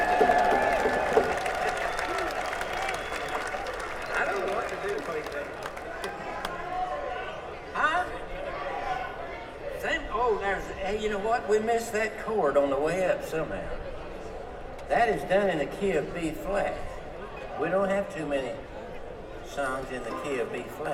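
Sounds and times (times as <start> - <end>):
audience applause for the sound technician at a live band performance: 0.0 - 6.7
crowd chatter: 0.0 - 20.9
speech: 11.4 - 13.8, 14.9 - 16.9, 17.6 - 18.7, 19.6 - 20.9.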